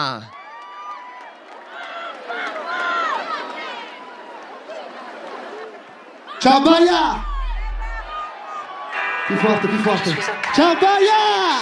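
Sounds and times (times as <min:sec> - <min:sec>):
speech: 0:00.0 - 0:00.4, 0:06.4 - 0:07.3, 0:09.3 - 0:11.6
audience applause: 0:00.3 - 0:08.9.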